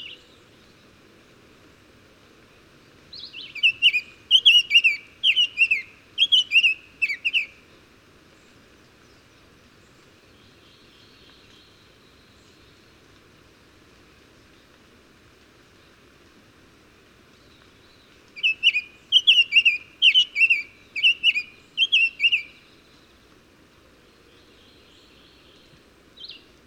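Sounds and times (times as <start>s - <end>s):
bird song: 0.0s - 1.0s, 2.8s - 7.6s, 8.3s - 13.1s, 17.3s - 23.2s, 24.0s - 26.6s.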